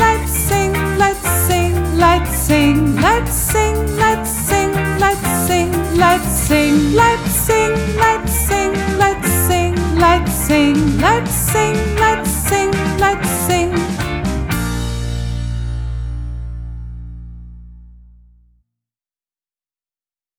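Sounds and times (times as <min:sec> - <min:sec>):
American song: 0:00.0 - 0:15.9.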